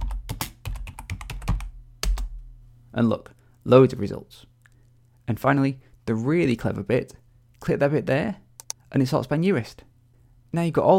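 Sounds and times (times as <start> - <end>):
typing a search into a computer keyboard: 0.0 - 2.3
speech: 3.0 - 4.5, 5.3 - 9.9, 10.5 - 10.9.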